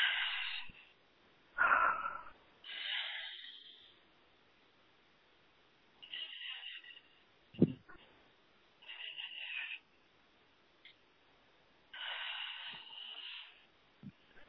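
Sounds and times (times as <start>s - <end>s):
soft breaths during a guided deep-breathing moment: 0.0s - 4.2s, 6.0s - 10.1s, 11.9s - 14.4s.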